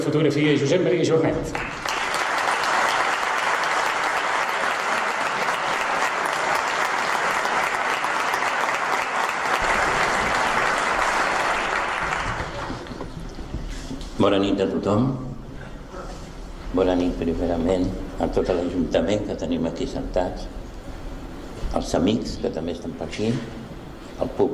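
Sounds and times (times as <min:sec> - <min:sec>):
speech: 0:00.0 - 0:01.8, 0:14.2 - 0:15.3, 0:16.7 - 0:20.6, 0:21.8 - 0:23.6, 0:24.2 - 0:24.5
audience applause: 0:01.5 - 0:13.3.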